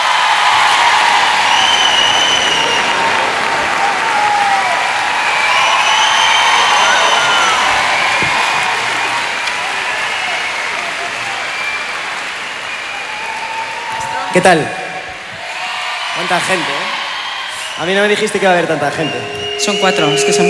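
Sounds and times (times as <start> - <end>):
audience applause: 0.0 - 20.2
speech: 14.4 - 14.8, 16.3 - 17.0, 17.8 - 20.4.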